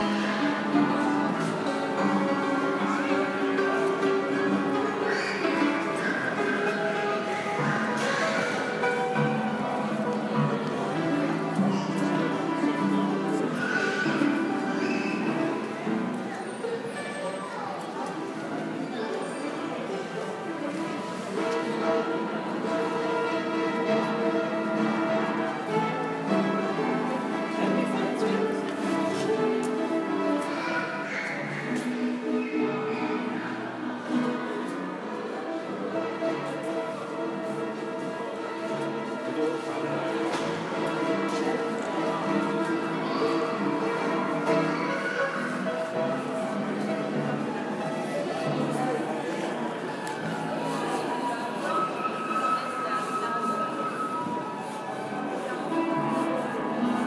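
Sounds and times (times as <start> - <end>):
out of tune piano at Chalet du Mont Royal Montreal Quebec Canada: 0.0 - 57.0.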